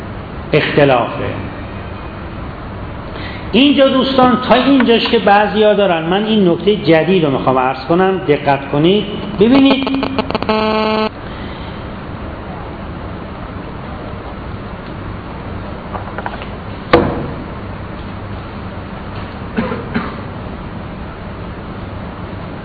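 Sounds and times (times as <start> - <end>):
speech: 0.5 - 1.6, 3.5 - 11.1
mobile phone ringing or buzzing: 9.6 - 11.1.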